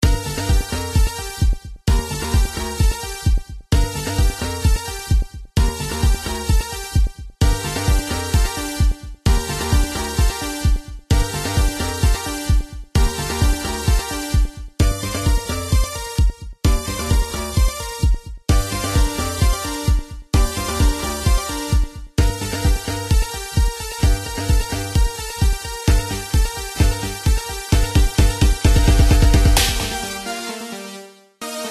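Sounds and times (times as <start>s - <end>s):
trance music: 0.0s - 31.6s.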